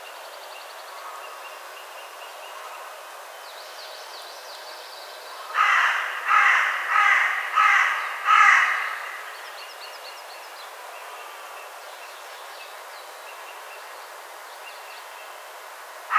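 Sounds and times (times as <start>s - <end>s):
Carrion crow Corvus corone cawing: 5.5s - 9.4s.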